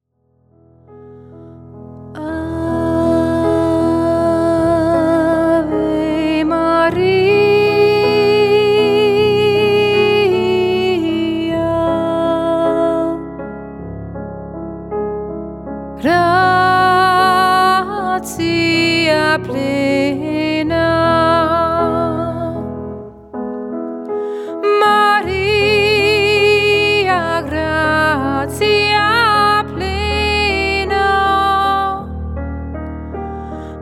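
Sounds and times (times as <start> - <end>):
piano accompaniment: 0.2 - 33.8
person singing: 2.2 - 13.2, 16.0 - 22.7, 24.4 - 32.2.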